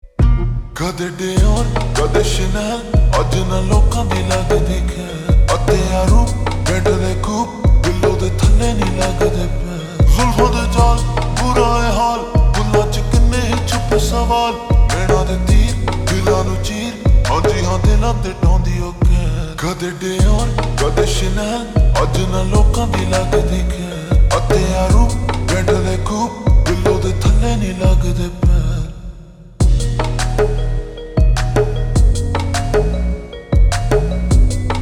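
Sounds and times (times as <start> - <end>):
slowed ringtone with reverb: 0.1 - 19.2, 20.2 - 28.6, 29.6 - 34.8.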